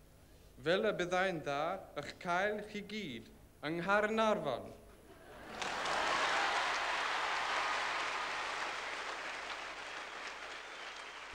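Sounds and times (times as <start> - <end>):
speech: 0.6 - 4.8
applause: 5.4 - 11.3.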